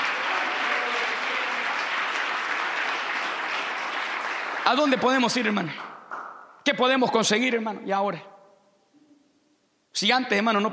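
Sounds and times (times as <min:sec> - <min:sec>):
audience applause: 0:00.0 - 0:06.3
speech: 0:04.7 - 0:05.9, 0:06.6 - 0:08.3, 0:10.0 - 0:10.7.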